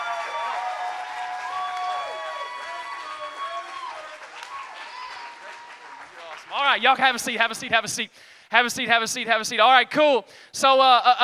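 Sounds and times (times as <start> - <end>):
audience applause welcoming two coaches onto a church stage: 0.0 - 7.6
speech: 6.6 - 11.2.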